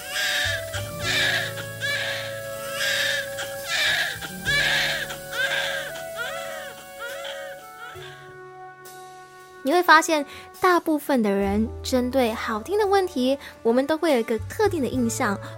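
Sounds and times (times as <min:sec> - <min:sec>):
newborn baby's first cry: 0:00.0 - 0:08.2
speech: 0:09.7 - 0:15.5.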